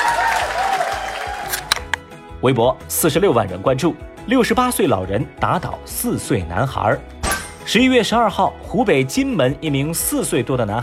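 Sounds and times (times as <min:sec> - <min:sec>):
applause: 0:00.0 - 0:01.7
speech: 0:02.4 - 0:07.1, 0:07.7 - 0:10.8.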